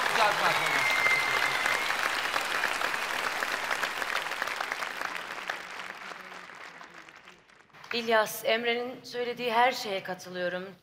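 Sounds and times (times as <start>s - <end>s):
audience applause: 0.0s - 8.1s
speech: 8.0s - 10.8s.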